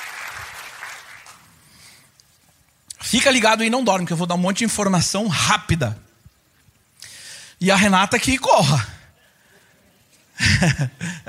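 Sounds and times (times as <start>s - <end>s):
audience applause: 0.0s - 1.6s
speech: 3.0s - 6.1s, 7.6s - 8.9s, 10.6s - 11.2s.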